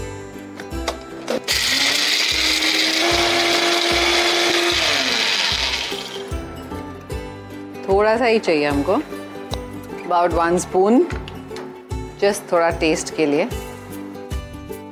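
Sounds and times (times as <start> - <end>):
mixer grinder grinding whole spices with water into paste: 1.4 - 6.4
speech: 8.0 - 9.2, 10.1 - 11.3, 12.2 - 13.6.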